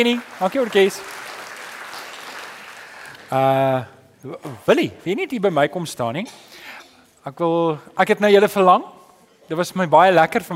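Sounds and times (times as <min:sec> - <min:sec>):
speech: 0:00.0 - 0:01.2, 0:03.3 - 0:10.5
crowd clapping for the band: 0:00.0 - 0:03.6.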